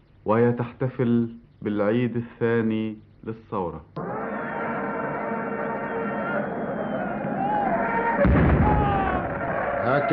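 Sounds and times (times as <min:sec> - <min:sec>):
noise: 0:00.0 - 0:10.1
speech: 0:00.2 - 0:04.1, 0:08.2 - 0:08.5, 0:09.9 - 0:10.1
cannon salute at Cairo's revolution anniversary celebration: 0:08.2 - 0:09.6.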